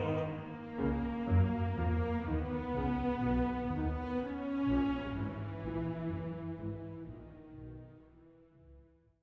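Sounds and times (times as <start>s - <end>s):
baritone singing: 0.0s - 0.9s
orchestra: 0.0s - 9.2s.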